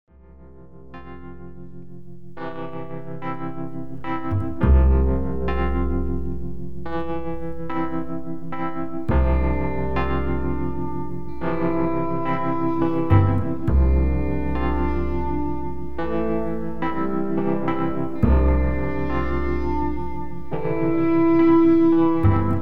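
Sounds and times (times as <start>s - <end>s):
New Orleans instrumental music: 0.2s - 22.6s.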